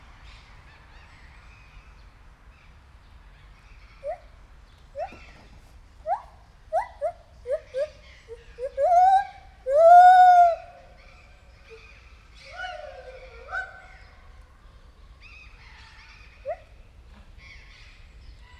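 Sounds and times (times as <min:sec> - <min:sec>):
white-handed gibbon whooping and hooting at a zoo: 0:06.1 - 0:10.9.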